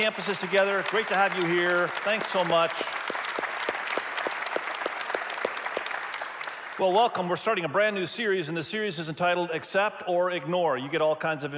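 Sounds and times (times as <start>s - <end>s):
speech: 0.0s - 2.8s, 6.8s - 11.5s
audience applause: 0.0s - 7.0s.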